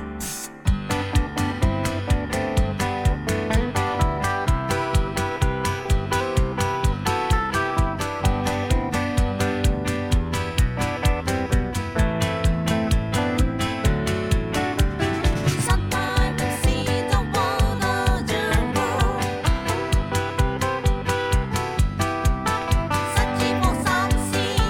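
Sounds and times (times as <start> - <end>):
square dance music: 0.7 - 24.6
harmony vocals: 15.5 - 20.0, 23.1 - 24.6.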